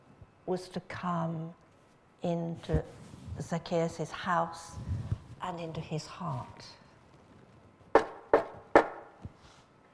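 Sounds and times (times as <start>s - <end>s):
speech: 0.5s - 1.6s, 2.2s - 6.8s
knocking on a door: 8.0s - 9.0s.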